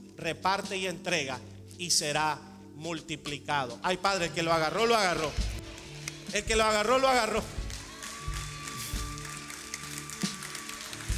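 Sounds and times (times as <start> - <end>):
speech: 0.2 - 5.5, 6.3 - 7.6
crowd applauding: 5.1 - 11.1.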